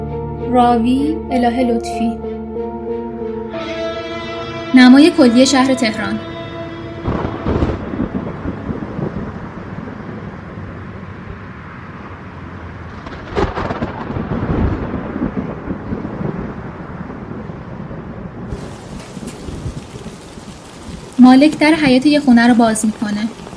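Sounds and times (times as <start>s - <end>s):
speech: 0.5s - 2.3s, 4.7s - 6.3s, 21.3s - 23.4s
steady rain outside a house courtyard in Tehran: 5.0s - 23.5s
rumbles of thunder: 6.2s - 11.6s, 12.8s - 23.5s.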